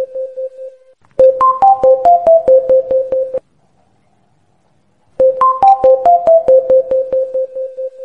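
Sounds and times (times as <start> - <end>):
ringtone background music theme: 1.2 - 3.4, 5.2 - 8.0.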